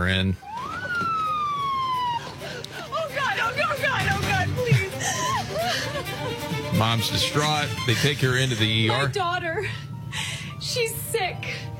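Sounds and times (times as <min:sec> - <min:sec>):
speech: 0:00.0 - 0:01.1, 0:06.2 - 0:10.2, 0:10.8 - 0:11.7
ambulance siren: 0:00.4 - 0:03.3
laughter: 0:00.8 - 0:09.8.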